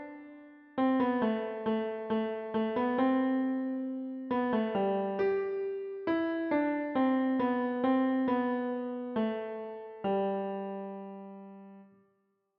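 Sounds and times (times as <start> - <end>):
Christmas carol played on piano: 0.0 - 11.9.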